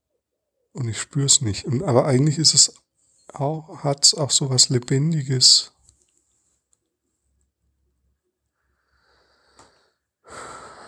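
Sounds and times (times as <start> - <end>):
speech: 0.7 - 5.8
deep breath: 8.6 - 10.8.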